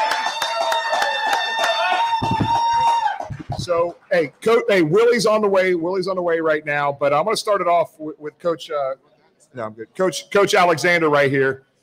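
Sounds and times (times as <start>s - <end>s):
audience applause: 0.0s - 4.0s
speech: 3.7s - 11.7s.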